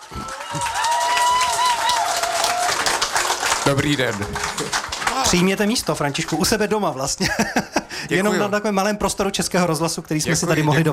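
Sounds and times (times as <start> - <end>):
audience applause welcoming a guest: 0.0 - 7.0
speech: 3.7 - 4.6, 5.3 - 10.9
laughter: 7.1 - 8.5.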